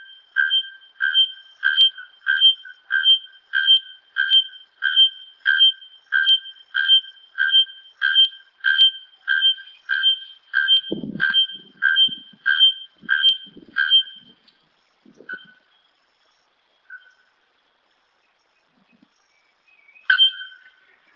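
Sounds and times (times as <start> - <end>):
bare-throated bellbird singing: 0.0 - 14.4, 15.2 - 15.7, 16.9 - 17.3, 19.8 - 21.1.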